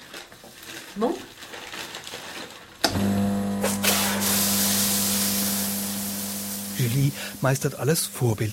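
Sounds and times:
speech: 0:00.9 - 0:01.3, 0:06.9 - 0:08.5
aerosol deodorant being sprayed: 0:03.6 - 0:08.5.

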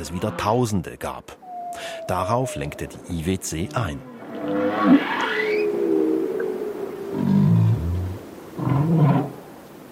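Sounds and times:
speech: 0:00.0 - 0:05.2
whale song recorded underwater: 0:01.4 - 0:03.3, 0:04.0 - 0:09.4.

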